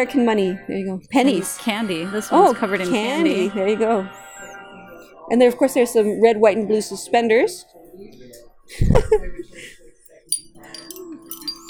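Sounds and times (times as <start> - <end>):
speech: 0.0 - 4.3, 5.3 - 9.8
necklaces clinking: 10.1 - 11.6.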